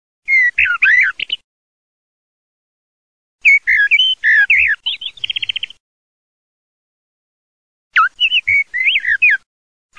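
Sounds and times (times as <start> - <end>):
Eurasian blackbird whistled song: 0.2 - 1.4, 3.4 - 5.8, 8.0 - 9.9.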